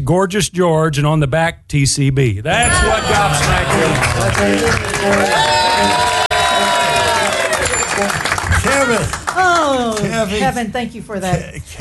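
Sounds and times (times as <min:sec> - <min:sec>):
speech: 0:00.0 - 0:06.2, 0:08.0 - 0:11.7
applause: 0:02.9 - 0:10.3
crowd cheering and whooping: 0:03.0 - 0:08.9.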